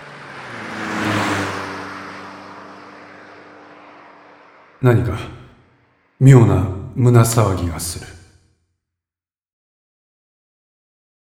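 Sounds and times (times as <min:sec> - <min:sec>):
patrol car speeding past: 0:00.0 - 0:06.9
rushing tire noise: 0:00.0 - 0:08.0
speech: 0:04.8 - 0:05.4, 0:06.2 - 0:08.2.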